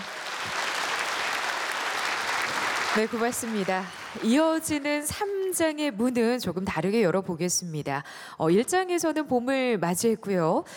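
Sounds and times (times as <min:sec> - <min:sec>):
concert audience applause for a traditional Korean orchestra: 0:00.0 - 0:05.0
speech: 0:02.9 - 0:10.7.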